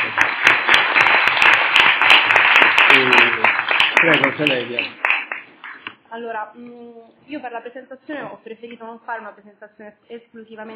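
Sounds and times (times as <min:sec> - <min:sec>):
audience applause: 0:00.0 - 0:05.8
speech: 0:04.0 - 0:05.0, 0:06.1 - 0:10.7.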